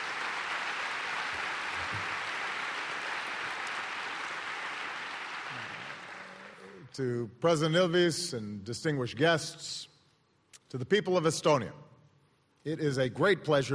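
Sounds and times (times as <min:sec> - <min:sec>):
audience applause: 0:00.0 - 0:06.9
speech: 0:07.0 - 0:09.9, 0:10.7 - 0:11.8, 0:12.6 - 0:13.7.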